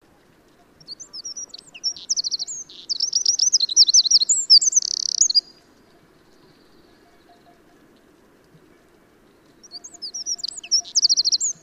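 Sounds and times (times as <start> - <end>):
Eurasian wren song of shrill notes and rapid trills: 0.7 - 7.6, 9.6 - 11.6.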